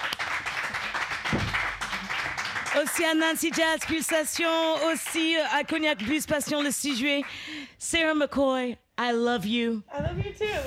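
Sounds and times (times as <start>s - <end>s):
audience applause: 0.0s - 5.3s
speech: 2.8s - 10.6s.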